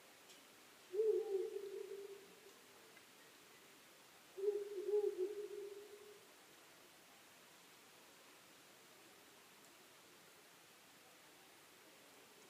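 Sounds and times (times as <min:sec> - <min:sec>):
owl hooting: 0:00.9 - 0:02.4, 0:04.4 - 0:06.2.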